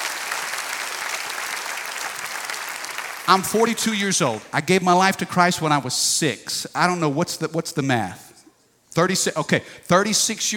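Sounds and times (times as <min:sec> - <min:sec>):
audience clapping hands: 0:00.0 - 0:04.4
speech: 0:03.3 - 0:08.3, 0:09.0 - 0:10.5.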